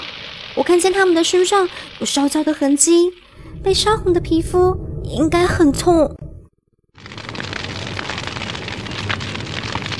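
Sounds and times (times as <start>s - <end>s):
speech: 0.6s - 6.2s
wildfire roaring and crackling: 3.2s - 9.9s.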